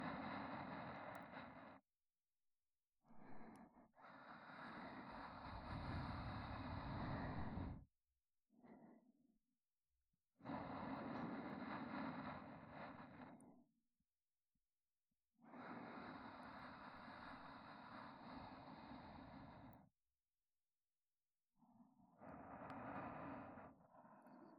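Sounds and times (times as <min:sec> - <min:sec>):
looping sleep companion audio track with reversed position: 0:00.0 - 0:01.9, 0:03.0 - 0:07.9, 0:08.6 - 0:09.2, 0:10.3 - 0:13.8, 0:15.4 - 0:19.9, 0:21.6 - 0:24.5.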